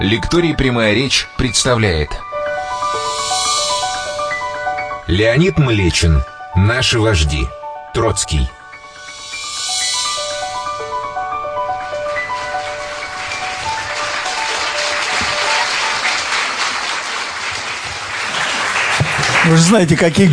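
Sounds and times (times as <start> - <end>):
speech: 0.0 - 2.3, 5.1 - 8.6, 19.5 - 20.3
melodic notes: 1.3 - 16.0
crowd applause: 11.5 - 20.3.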